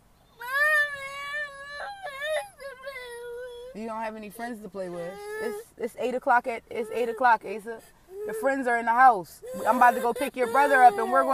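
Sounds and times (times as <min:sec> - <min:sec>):
young child whining and crying: 0:00.2 - 0:03.8, 0:04.9 - 0:05.8, 0:08.1 - 0:08.6, 0:09.4 - 0:11.3
speech: 0:03.8 - 0:11.3.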